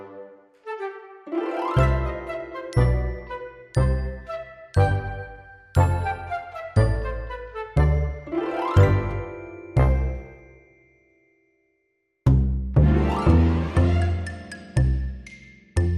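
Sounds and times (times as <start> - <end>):
reduced strings: 1.3 - 10.5, 12.7 - 15.9.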